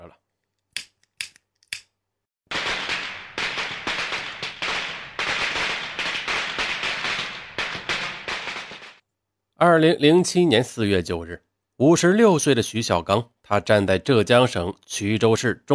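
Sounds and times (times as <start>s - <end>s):
firecrackers going off: 2.5s - 9.0s
speech: 9.6s - 15.7s.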